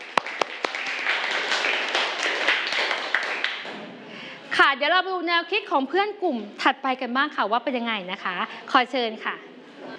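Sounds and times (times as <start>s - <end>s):
group applause for classmates: 0.0s - 4.0s
speech: 4.7s - 9.5s.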